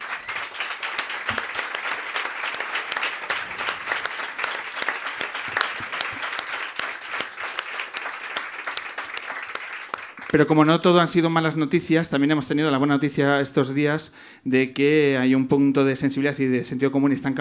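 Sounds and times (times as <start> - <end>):
audience applause: 0.0 - 10.6
speech: 10.3 - 17.3.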